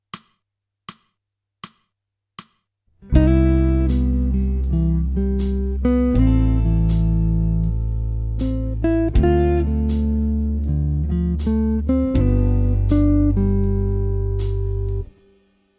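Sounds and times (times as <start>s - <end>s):
jazz music: 3.2s - 15.1s.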